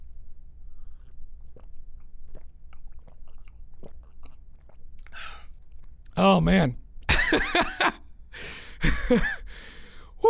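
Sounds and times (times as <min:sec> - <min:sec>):
person drinking water: 0:00.1 - 0:06.1
breathy exhale: 0:05.2 - 0:05.5, 0:08.4 - 0:08.8, 0:09.5 - 0:10.2
speech: 0:06.2 - 0:08.0, 0:08.8 - 0:09.4.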